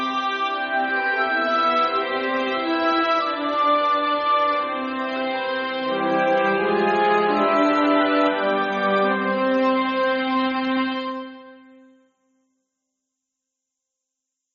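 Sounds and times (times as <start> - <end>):
orchestra playing: 0.0 - 11.6.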